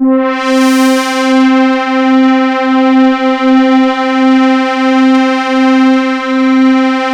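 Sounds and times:
mono synth pad: 0.0s - 7.1s.

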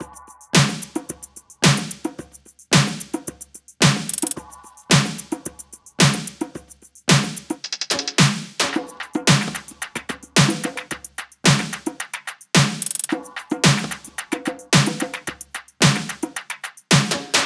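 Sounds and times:
music loop: 0.0s - 17.4s.

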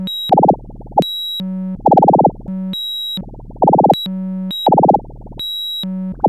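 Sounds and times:
machine talk: 0.3s - 1.2s, 1.8s - 2.5s, 3.2s - 5.4s.

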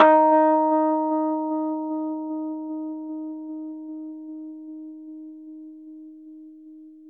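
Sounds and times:
Rhodes electric piano playing D sharp: 0.0s - 5.3s.

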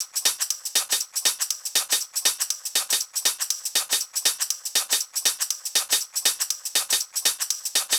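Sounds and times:
hi-hat and shaker loop: 0.0s - 7.9s.

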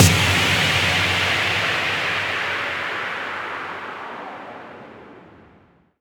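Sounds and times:
impact sound effects: 0.0s - 4.3s.

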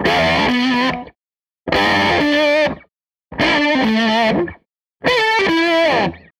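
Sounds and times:
SG electric guitar loop: 0.0s - 6.3s.

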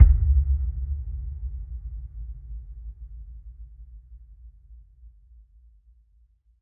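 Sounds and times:
impact hit noise: 0.0s - 2.3s.

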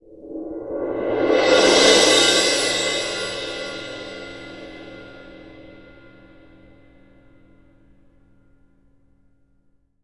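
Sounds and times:
Synclavier Percussion CYM CRS-R cymbal crash: 0.6s - 7.8s.

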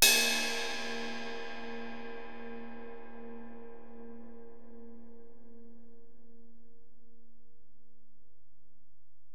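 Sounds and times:
Alesis DM-PRO drum machine ride cymbal: 0.0s - 2.0s.

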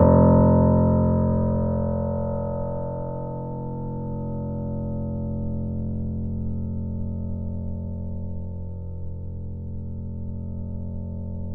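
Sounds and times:
grand piano: 0.0s - 7.8s.

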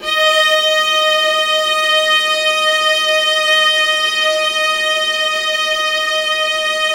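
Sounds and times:
D#3 viola expressive note: 0.0s - 6.9s.

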